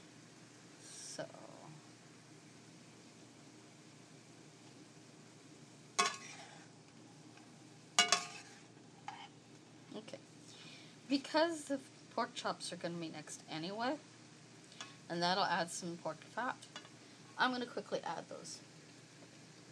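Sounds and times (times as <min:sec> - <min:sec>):
chow mein stir-frying in a pan: 0:00.0 - 0:19.6
speech: 0:01.2 - 0:01.5, 0:11.1 - 0:14.1, 0:15.1 - 0:16.8, 0:17.4 - 0:18.7
utensil clattering against pan: 0:06.0 - 0:06.4, 0:08.0 - 0:08.5.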